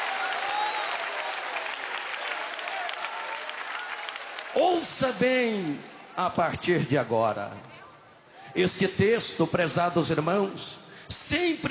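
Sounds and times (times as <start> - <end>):
audience applauding: 0.0 - 5.6
speech: 4.6 - 7.8, 8.5 - 11.6.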